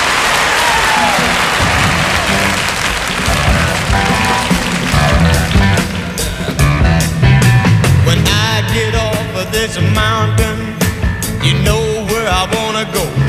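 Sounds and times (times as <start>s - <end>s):
audience applause greeting a rock group: 0.0s - 7.0s
drum-like hits: 0.0s - 13.2s
sustained musical tones: 1.2s - 13.2s.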